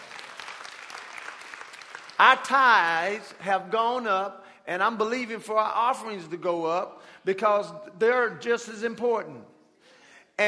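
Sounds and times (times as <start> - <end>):
audience hand clapping: 0.0 - 3.3
speech: 2.2 - 9.5.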